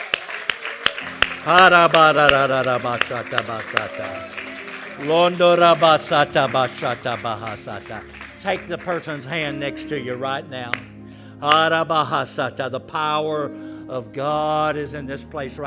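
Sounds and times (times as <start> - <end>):
voices shouting and cheering: 0.0 - 9.2
audience clapping hands in worship: 0.0 - 9.6
speech: 1.4 - 15.6.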